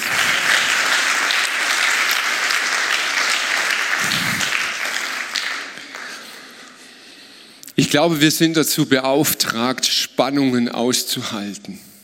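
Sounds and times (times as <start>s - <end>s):
audience applause: 0.0s - 6.8s
speech: 7.9s - 11.9s.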